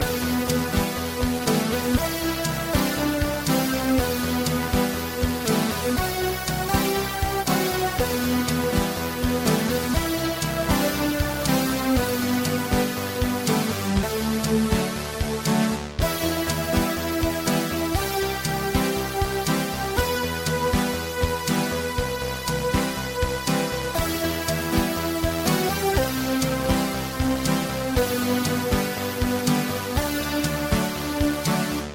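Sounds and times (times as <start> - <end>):
retro music loop: 0.0 - 31.9.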